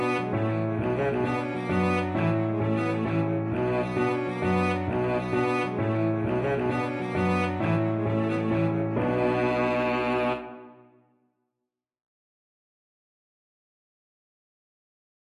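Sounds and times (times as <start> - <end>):
violoncello: 0.0 - 10.8.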